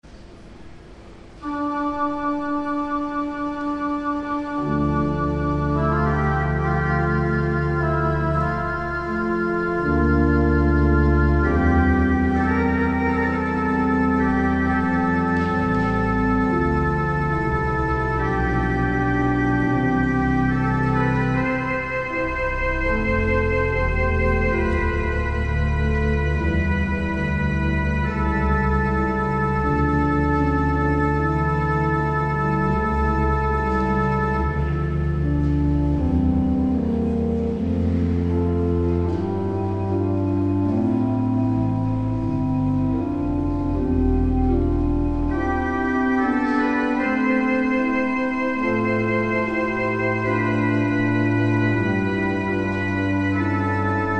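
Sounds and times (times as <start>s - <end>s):
organ chorale prelude: 0.0s - 54.1s.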